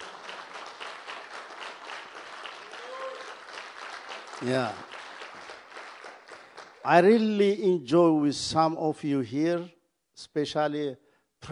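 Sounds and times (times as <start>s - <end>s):
audience applause: 0.0s - 7.3s
speech: 4.4s - 4.9s, 6.8s - 11.5s.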